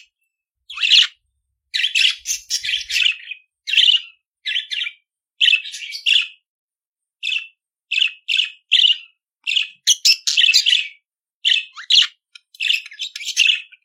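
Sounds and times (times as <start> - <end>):
budgerigar chattering song with squeaky chirps and buzzing warbles: 0.7 - 6.4, 7.2 - 13.8.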